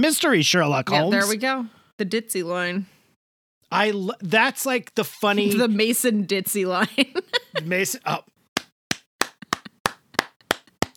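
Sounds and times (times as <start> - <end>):
speech: 0.0 - 2.9, 3.7 - 8.3
laughter: 6.8 - 7.9
hand claps: 8.6 - 10.9.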